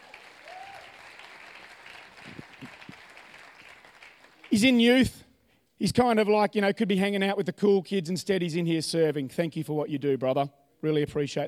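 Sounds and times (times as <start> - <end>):
audience applause: 0.0 - 4.8
speech: 4.5 - 5.2, 5.8 - 11.4.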